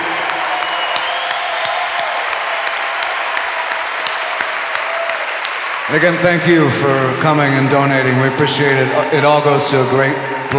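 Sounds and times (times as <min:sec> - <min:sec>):
audience applause: 0:00.0 - 0:10.2
speech: 0:05.9 - 0:10.5.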